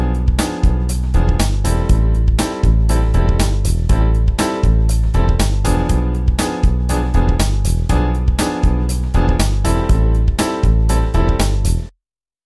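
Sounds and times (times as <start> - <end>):
synth mambo groove: 0.0 - 11.9.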